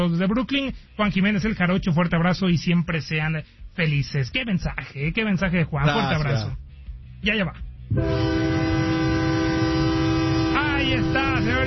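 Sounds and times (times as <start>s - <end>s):
speech: 0.0s - 6.6s, 7.2s - 8.6s, 10.9s - 11.6s
train whistle: 7.9s - 11.6s.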